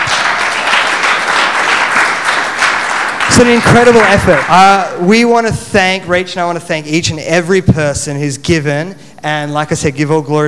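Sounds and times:
crowd clapping: 0:00.0 - 0:05.0
speech: 0:03.4 - 0:10.4.

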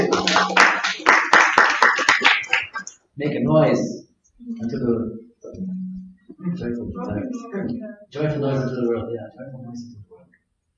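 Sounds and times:
hand clapping: 0:00.0 - 0:03.0
speech: 0:03.2 - 0:05.2, 0:07.0 - 0:10.2.

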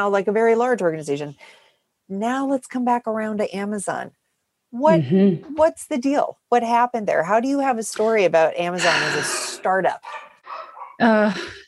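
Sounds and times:
speech: 0:00.0 - 0:10.3, 0:11.0 - 0:11.6
dog barking: 0:10.0 - 0:11.0.

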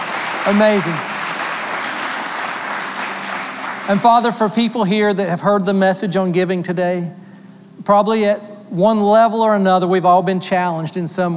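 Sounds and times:
audience applause: 0:00.0 - 0:04.7
speech: 0:00.4 - 0:01.1, 0:03.9 - 0:07.2, 0:07.8 - 0:11.3.

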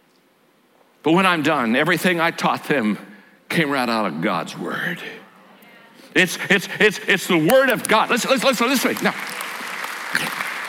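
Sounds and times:
speech: 0:01.0 - 0:05.2, 0:06.1 - 0:09.4
crowd audience clapping: 0:07.4 - 0:10.6.

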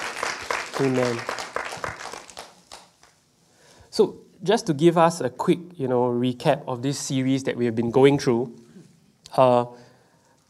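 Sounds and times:
audience clapping in praise: 0:00.0 - 0:03.2
speech: 0:00.8 - 0:01.4, 0:04.0 - 0:08.6, 0:09.3 - 0:09.8.

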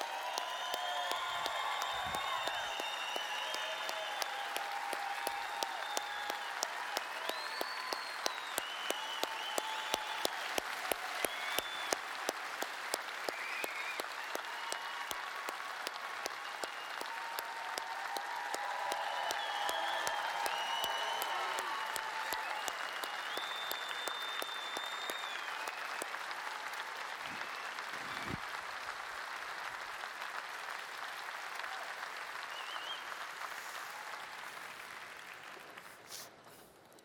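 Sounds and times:
whoops and whistles: 0:00.0 - 0:10.4, 0:11.2 - 0:12.0, 0:13.3 - 0:15.2, 0:16.6 - 0:26.1, 0:32.5 - 0:33.2
church audience clapping to welcome a founding pastor at a 30-year celebration: 0:00.0 - 0:37.0.

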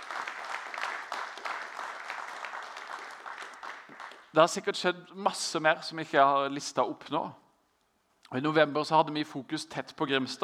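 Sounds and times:
audience applause: 0:00.0 - 0:04.3
speech: 0:04.4 - 0:07.4, 0:08.3 - 0:10.4.

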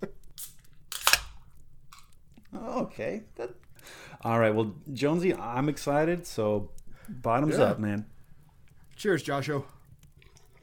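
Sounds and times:
drink can opening: 0:00.4 - 0:02.1
speech: 0:02.7 - 0:08.2, 0:09.0 - 0:09.8.

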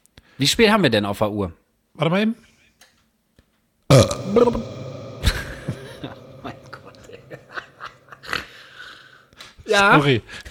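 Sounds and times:
speech: 0:00.4 - 0:02.5, 0:03.9 - 0:04.8, 0:09.7 - 0:10.5
breathy mouth noises: 0:03.9 - 0:07.9
person burping: 0:03.9 - 0:08.5
laughter: 0:05.4 - 0:08.4.

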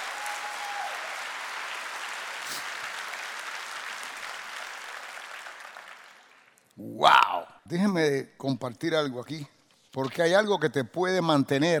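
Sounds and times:
audience applause: 0:00.0 - 0:06.5
speech: 0:06.8 - 0:11.7.

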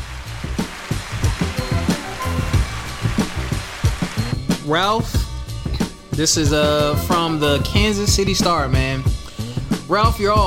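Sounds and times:
hand clap sound effect: 0:00.0 - 0:04.4
speech: 0:04.7 - 0:05.2, 0:06.2 - 0:09.2, 0:09.9 - 0:10.4.

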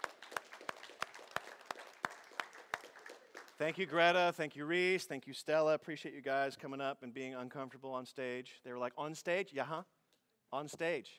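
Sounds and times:
audience applause: 0:00.0 - 0:04.0
speech: 0:03.6 - 0:11.1.

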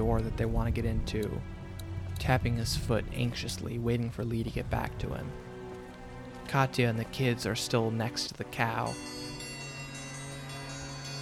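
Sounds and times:
speech: 0:00.0 - 0:01.6, 0:02.2 - 0:05.4, 0:06.5 - 0:09.2
dinner bell ringing: 0:08.8 - 0:11.2.

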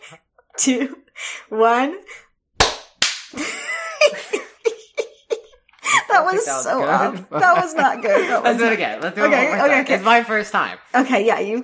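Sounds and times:
speech: 0:00.1 - 0:02.1, 0:06.3 - 0:11.6
single hand clap for recording sync: 0:02.6 - 0:03.4
laughter: 0:03.4 - 0:09.9.

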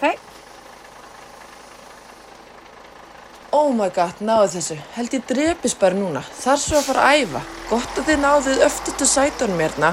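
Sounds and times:
city bus engine idling: 0:00.0 - 0:09.9
speech: 0:03.6 - 0:09.9.

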